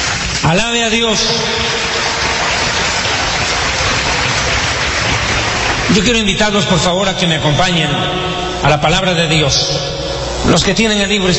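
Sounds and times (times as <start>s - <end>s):
audience applause: 0.0s - 6.7s
speech: 0.5s - 1.7s, 5.9s - 11.3s.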